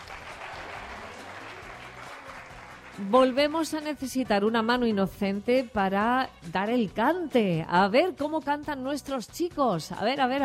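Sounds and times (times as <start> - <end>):
audience applauding: 0.0 - 3.7
speech: 3.0 - 10.4.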